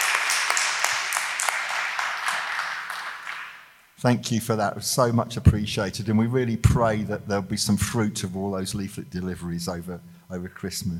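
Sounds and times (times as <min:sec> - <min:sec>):
audience applause: 0:00.0 - 0:03.8
speech: 0:04.0 - 0:10.9.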